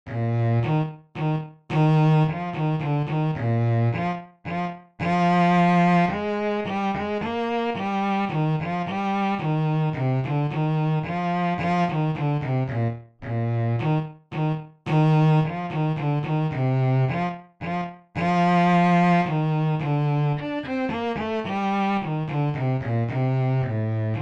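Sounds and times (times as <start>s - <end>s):
bass: 0.1s - 24.1s.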